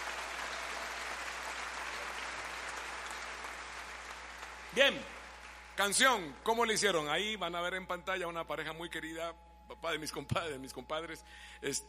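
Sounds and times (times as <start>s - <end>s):
audience applause: 0.0s - 6.0s
speech: 4.7s - 5.2s, 5.8s - 11.8s.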